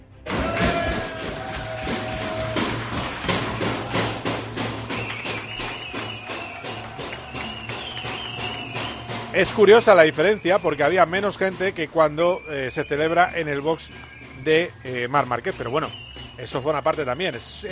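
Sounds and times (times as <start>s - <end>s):
crowd cheering: 0.2s - 17.7s
drum beats in a pit box celebration: 0.3s - 17.7s
high whistle-like tones: 4.8s - 17.7s
speech: 9.4s - 17.7s.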